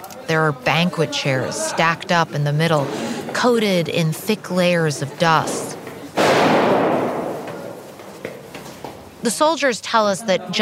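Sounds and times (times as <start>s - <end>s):
speech: 0.3s - 5.6s, 9.2s - 10.5s
gunfire: 6.2s - 7.8s.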